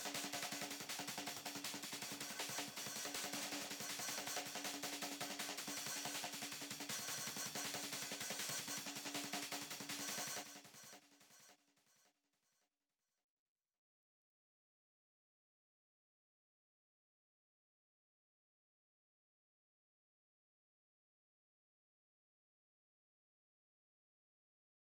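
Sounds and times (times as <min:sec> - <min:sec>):
beat with delay effect: 0:00.0 - 0:10.9.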